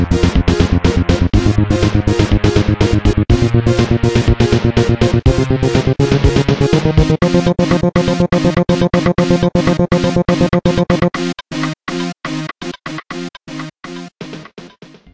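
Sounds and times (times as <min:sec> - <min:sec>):
rave dance tune: 0:00.0 - 0:11.2.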